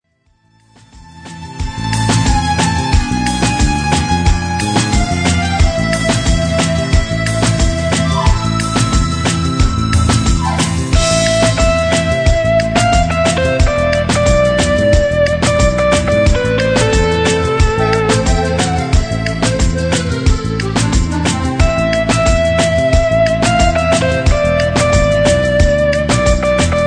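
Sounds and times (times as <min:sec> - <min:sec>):
baion rhythm: 0:01.2 - 0:26.8.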